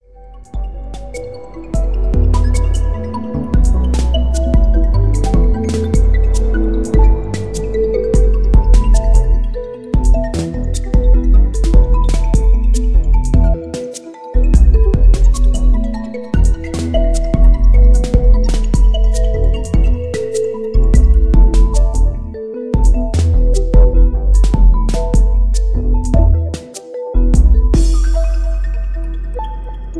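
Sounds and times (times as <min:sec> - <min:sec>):
ambient loop: 0:00.0 - 0:29.9.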